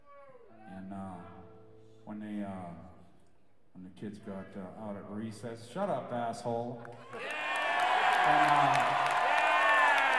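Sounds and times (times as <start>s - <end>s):
speech: 3.8s - 7.3s, 8.2s - 9.2s
audience cheering: 7.0s - 10.1s.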